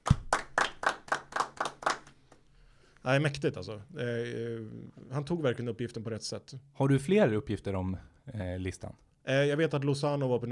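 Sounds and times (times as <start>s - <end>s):
applause: 0.0s - 2.4s
speech: 3.1s - 10.5s.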